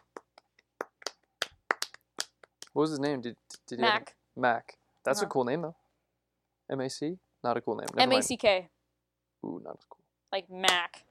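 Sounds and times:
applause: 0.0s - 2.6s
speech: 2.8s - 5.8s, 6.7s - 8.8s, 9.4s - 11.1s.

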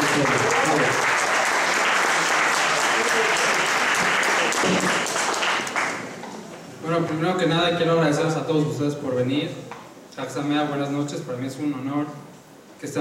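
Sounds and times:
audience applause: 0.0s - 6.2s
speech: 0.2s - 0.6s, 6.9s - 12.2s, 12.8s - 12.9s.

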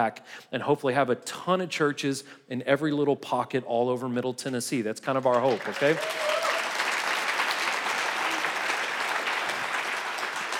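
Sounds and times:
speech: 0.0s - 6.5s
audience applauding: 5.2s - 10.5s.

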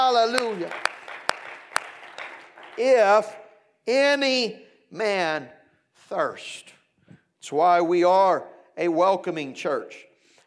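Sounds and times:
audience clapping hands: 0.0s - 3.4s
speech: 0.1s - 0.9s, 2.8s - 6.8s, 7.4s - 10.1s.

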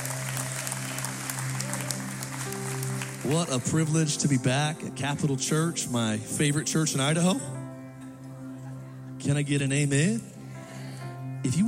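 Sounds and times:
audience clapping hands: 0.0s - 4.4s
speech: 3.2s - 7.6s, 9.2s - 10.3s, 11.4s - 11.6s.

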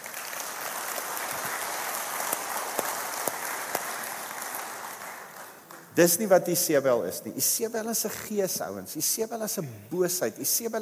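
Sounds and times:
hand clapping: 0.0s - 6.0s
speech: 6.0s - 10.8s.

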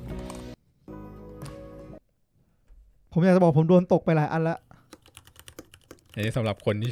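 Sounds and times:
speech: 3.2s - 4.7s, 6.2s - 6.9s
mechanical keyboard clacking: 4.9s - 6.9s.

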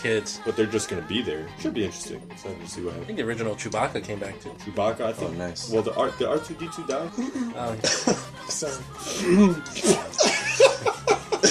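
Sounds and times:
speech: 0.0s - 10.3s
laughter: 7.1s - 8.4s, 9.0s - 11.5s
throat clearing: 7.8s - 8.3s.

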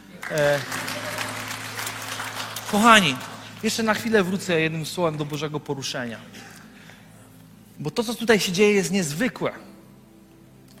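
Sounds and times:
audience applause: 0.0s - 5.0s
speech: 0.3s - 0.8s, 2.7s - 6.5s, 7.8s - 9.7s.

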